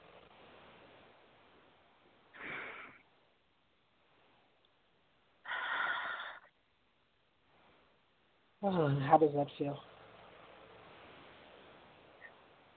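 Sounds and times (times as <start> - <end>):
deep breath: 2.3 - 3.1, 5.4 - 6.5
speech: 8.6 - 9.9.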